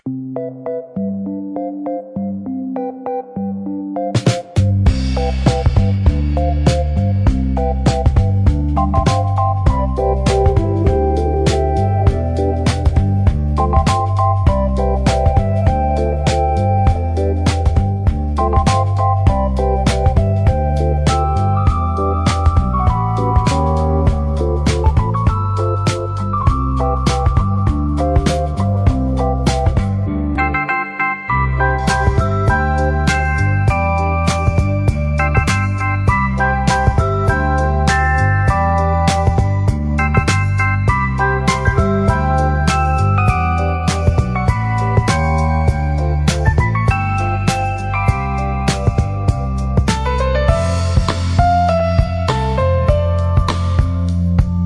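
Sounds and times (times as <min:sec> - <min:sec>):
background music for a mukbang: 0:00.0 - 0:54.6.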